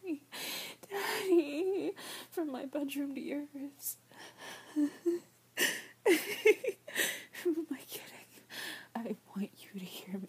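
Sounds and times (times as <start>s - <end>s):
woman whimpering and whining: 0.0s - 2.2s, 4.3s - 7.7s
speech: 2.4s - 4.1s, 4.8s - 5.3s.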